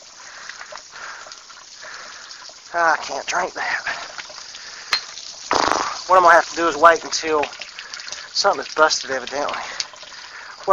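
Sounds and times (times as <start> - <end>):
cold water running from a tap: 0.0 - 10.7
speech: 2.7 - 4.0, 6.1 - 7.6, 8.4 - 9.8.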